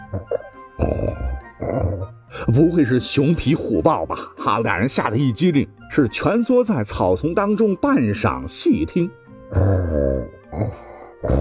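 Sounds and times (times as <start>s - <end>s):
person imitating human snoring: 0.0s - 2.1s, 9.5s - 11.3s
speech: 0.1s - 0.4s, 2.6s - 10.0s.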